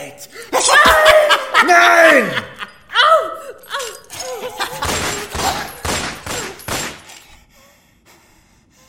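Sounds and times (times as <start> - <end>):
laughter: 0.5 - 5.9
gunfire: 4.8 - 7.2.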